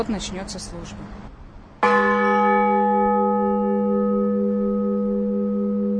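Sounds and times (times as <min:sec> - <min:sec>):
speech: 0:00.0 - 0:01.4
church bell ringing to call to service: 0:01.8 - 0:05.9.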